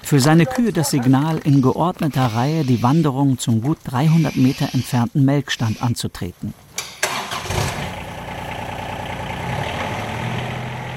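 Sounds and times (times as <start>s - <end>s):
speech: 0.1s - 6.6s
quad bike engine starting and idling: 6.8s - 10.9s.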